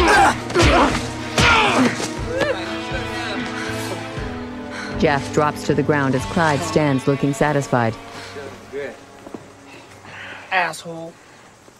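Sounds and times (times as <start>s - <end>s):
punches landing in a fistfight between two boys: 0.0s - 2.6s
speech: 5.0s - 8.1s, 10.5s - 11.2s.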